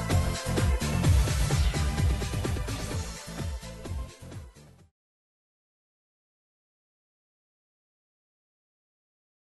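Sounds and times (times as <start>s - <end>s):
bass: 0.0s - 4.9s.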